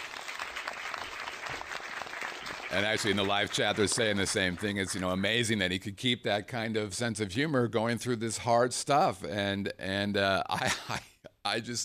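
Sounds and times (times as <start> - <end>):
audience applause: 0.0 - 5.0
speech: 2.7 - 11.8.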